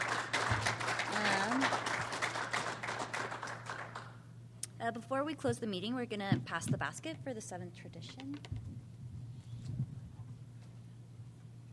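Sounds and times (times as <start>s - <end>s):
applause for speakers: 0.0s - 4.2s
speech: 4.9s - 8.8s.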